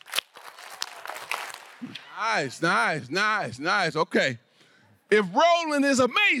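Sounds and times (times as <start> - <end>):
audience clapping: 0.0 - 2.0
speech: 1.8 - 4.4, 5.1 - 6.3.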